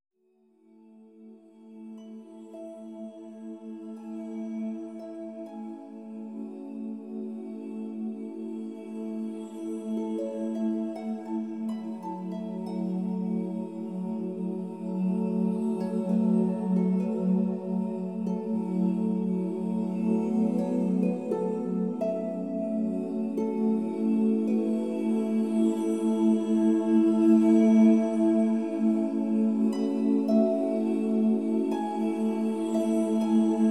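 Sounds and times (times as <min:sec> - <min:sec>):
Celtic harp music: 0:01.6 - 0:33.7.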